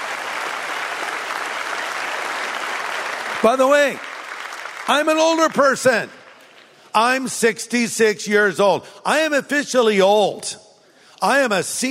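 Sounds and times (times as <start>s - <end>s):
audience applause: 0.0s - 6.8s
speech: 3.4s - 4.1s, 4.8s - 6.2s, 6.9s - 10.6s, 11.2s - 11.9s.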